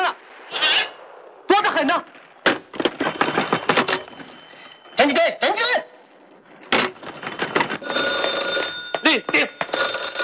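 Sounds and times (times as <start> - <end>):
speech: 1.8 - 2.2, 5.0 - 5.8, 9.1 - 9.6
telephone bell ringing: 3.0 - 5.2, 6.8 - 10.2.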